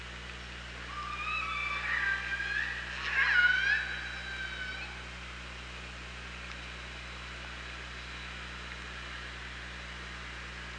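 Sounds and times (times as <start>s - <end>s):
low steady hum: 0.0s - 10.7s
killer whale calls: 0.9s - 5.1s.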